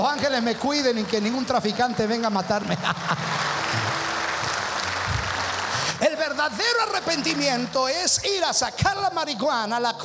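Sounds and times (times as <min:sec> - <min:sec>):
audience applause: 0:00.0 - 0:07.9
speech: 0:00.1 - 0:03.4, 0:06.4 - 0:10.0
laughter: 0:02.5 - 0:04.0.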